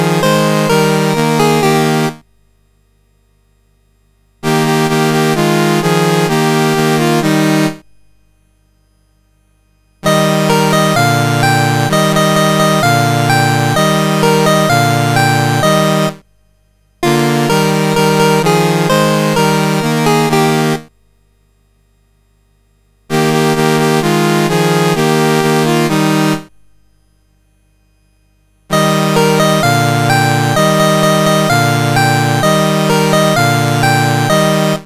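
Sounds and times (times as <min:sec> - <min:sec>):
CSG8580R5 chiptune national anthem: 0:00.0 - 0:02.2, 0:04.4 - 0:07.8, 0:10.0 - 0:16.2, 0:17.0 - 0:20.9, 0:23.1 - 0:26.5, 0:28.7 - 0:34.8.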